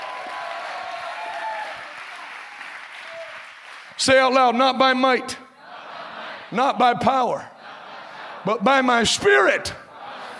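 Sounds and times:
audience clapping: 0.0s - 4.1s
speech: 4.0s - 5.4s, 6.5s - 7.5s, 8.4s - 9.8s.

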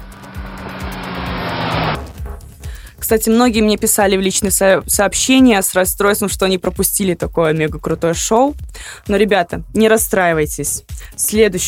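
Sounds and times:
loud car engine revving at motor show: 0.0s - 2.7s
speech: 3.1s - 11.6s.

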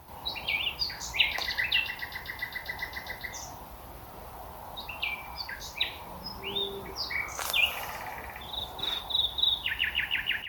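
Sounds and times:
Common Nightingale singing: 0.1s - 3.6s, 4.8s - 10.4s.

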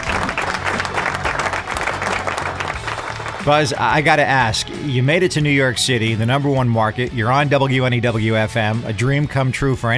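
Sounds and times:
sustained audience applause: 0.0s - 3.9s
speech: 3.4s - 9.9s.

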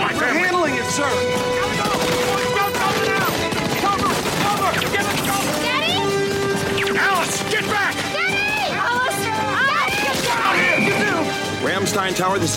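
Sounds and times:
speech: 1.0s - 1.5s, 12.0s - 12.5s
people shouting: 1.2s - 11.5s
gunfire aboard Air Force One: 1.6s - 7.7s.

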